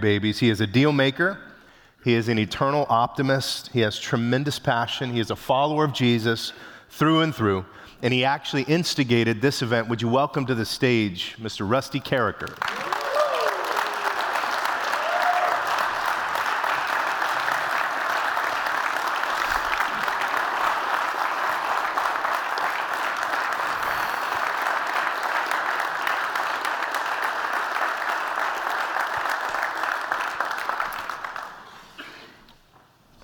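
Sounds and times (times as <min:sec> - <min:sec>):
speech: 0:00.0 - 0:12.8
standing audience applauding a football punter: 0:12.5 - 0:32.0.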